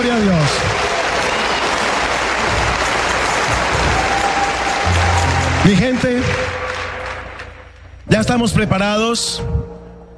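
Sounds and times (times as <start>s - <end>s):
speech: 0.0s - 0.8s, 5.6s - 6.6s, 8.1s - 9.8s
audience applauding loudly: 0.0s - 8.1s.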